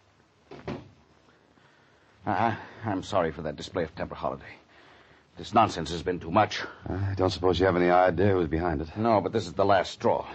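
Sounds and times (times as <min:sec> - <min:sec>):
door closing: 0:00.5 - 0:01.0
speech: 0:02.3 - 0:04.6, 0:05.4 - 0:10.3.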